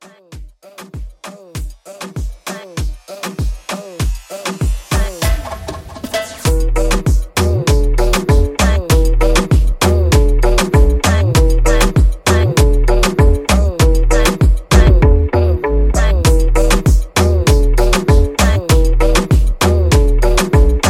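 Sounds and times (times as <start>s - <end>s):
dance music bootleg remix: 0.0s - 20.8s.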